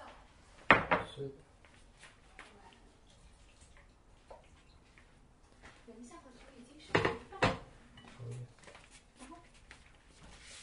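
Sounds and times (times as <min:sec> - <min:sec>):
plates and utensils clinking while dishes are washed: 0:06.9 - 0:08.3.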